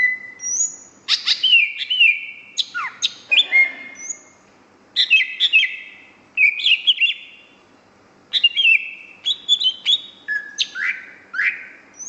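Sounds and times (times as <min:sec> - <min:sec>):
greater green leafbird singing whistles and rattling trills: 0:00.0 - 0:04.4, 0:05.0 - 0:07.5, 0:08.3 - 0:12.0.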